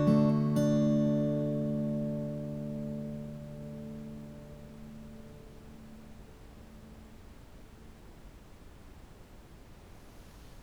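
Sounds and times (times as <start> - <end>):
fingerstyle guitar: 0.0 - 7.2.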